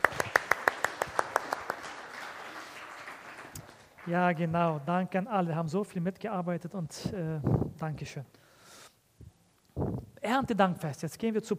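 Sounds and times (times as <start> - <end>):
audience applause: 0.0 - 4.4
speech: 4.1 - 8.4, 10.3 - 11.5.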